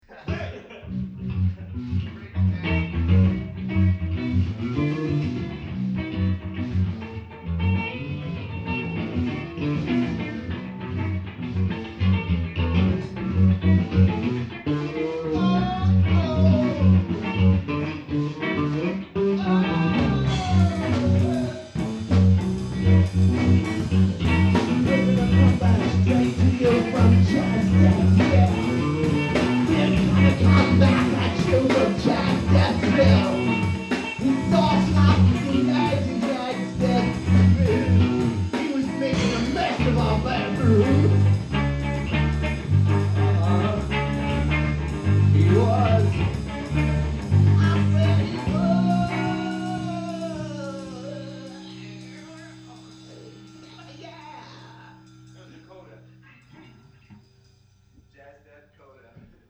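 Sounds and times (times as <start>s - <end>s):
laughter: 0.0s - 1.8s
jazz music coda: 1.0s - 58.1s.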